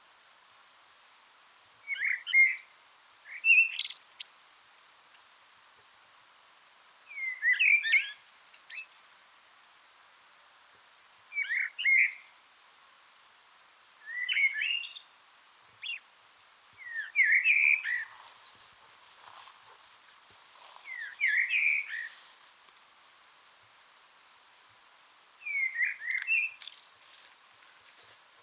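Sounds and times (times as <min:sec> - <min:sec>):
Eurasian blackbird singing: 0:03.3 - 0:04.4, 0:07.1 - 0:08.9, 0:11.3 - 0:12.3, 0:14.0 - 0:15.1, 0:15.8 - 0:18.6, 0:20.8 - 0:22.2, 0:25.4 - 0:26.6.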